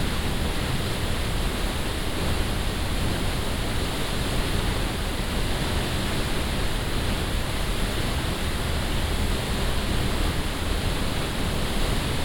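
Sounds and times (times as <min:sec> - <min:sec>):
Gluggafoss waterfall recorded close up: 0:00.0 - 0:12.2.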